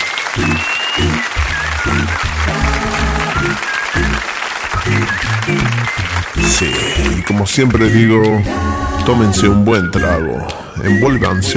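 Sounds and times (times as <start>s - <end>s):
audience applause at a live variety show: 0.0s - 8.4s
rhythmic band music: 0.0s - 11.5s
speech: 6.6s - 11.5s.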